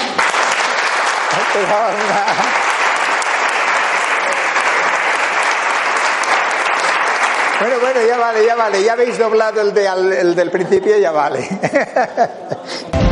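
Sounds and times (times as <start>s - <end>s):
audience applause: 0.0s - 9.0s
laughter: 1.5s - 2.8s, 10.6s - 13.0s
speech: 1.6s - 2.7s, 7.6s - 12.5s.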